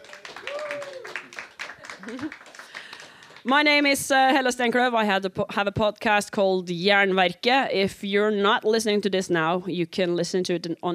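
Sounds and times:
crowd whooping and shouting: 0.0s - 1.4s
crowd clapping: 0.0s - 3.9s
speech: 2.0s - 2.5s, 3.4s - 10.9s.

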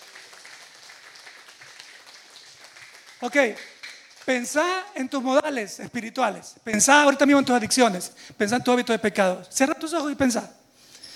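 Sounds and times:
audience clapping hands: 0.0s - 5.5s
speech: 3.2s - 10.6s.

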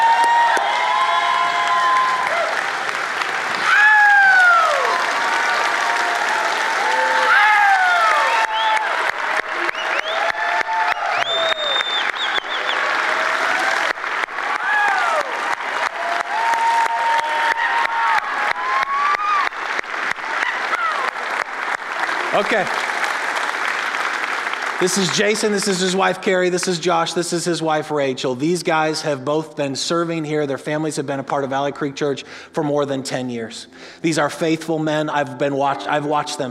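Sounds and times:
audience applauding and cheering: 0.0s - 26.6s
speech: 22.4s - 22.8s, 24.8s - 36.4s.

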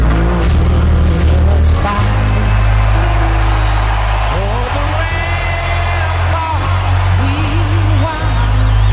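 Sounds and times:
stadium crowd cheering during national anthem: 0.1s - 8.9s.

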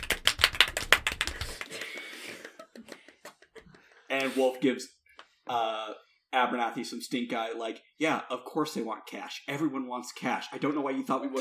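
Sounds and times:
golf clap, soft polite clapping: 0.0s - 4.0s
speech: 4.1s - 11.3s.

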